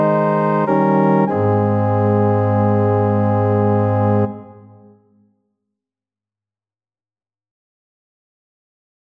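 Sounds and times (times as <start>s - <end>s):
organ: 0.0s - 4.9s.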